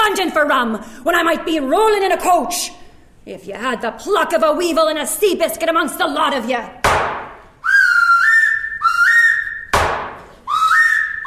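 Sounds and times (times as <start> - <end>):
speech: 0.2 - 7.2
sharp thud: 6.8 - 7.4, 9.7 - 10.3
shrill whistle blown as a signal: 7.6 - 9.8, 10.4 - 11.2.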